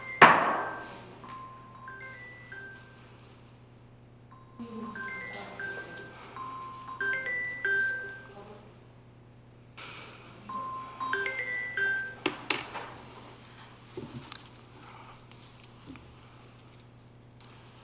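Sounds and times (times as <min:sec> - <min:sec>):
phone ringing with a melodic electronic ringtone: 0:00.0 - 0:03.3, 0:04.3 - 0:08.7, 0:10.4 - 0:12.5.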